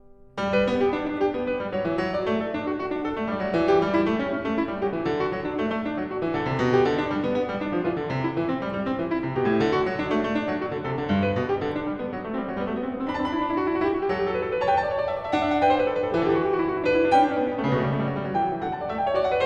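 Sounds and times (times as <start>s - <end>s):
baroque keyboard variation in allegro: 0.0s - 19.4s.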